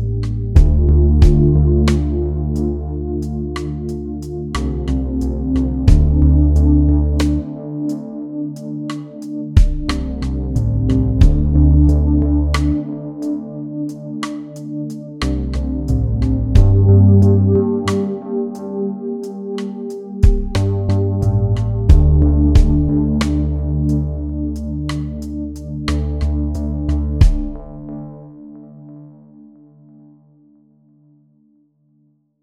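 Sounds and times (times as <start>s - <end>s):
backing track in 4/4 at 45 bpm: 0.0s - 7.6s, 9.6s - 13.0s, 15.2s - 18.2s, 20.2s - 27.7s.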